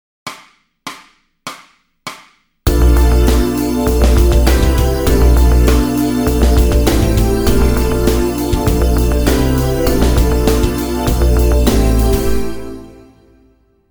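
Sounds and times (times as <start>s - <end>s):
backing track: 2.7s - 13.3s.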